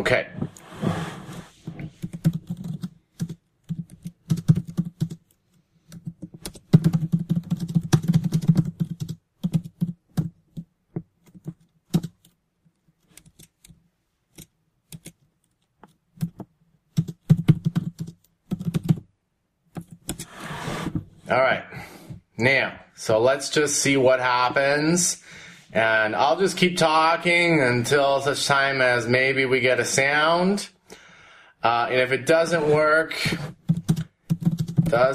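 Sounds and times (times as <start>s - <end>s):
speech: 0.0s - 1.0s, 22.4s - 30.8s, 31.6s - 33.6s, 34.9s - 35.1s
typing on a computer keyboard: 2.0s - 12.4s, 14.4s - 19.1s, 33.6s - 35.0s.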